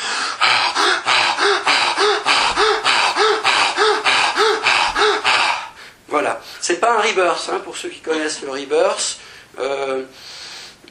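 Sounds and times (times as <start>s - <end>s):
deep forceful breaths in a breathing demonstration: 0.0s - 6.6s, 9.2s - 10.8s
speech: 6.7s - 10.3s.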